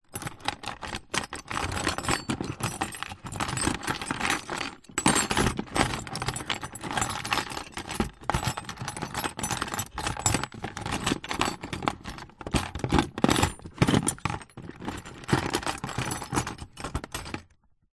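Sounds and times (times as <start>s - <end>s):
rummaging in industrial plastic tool box: 0.0s - 17.6s.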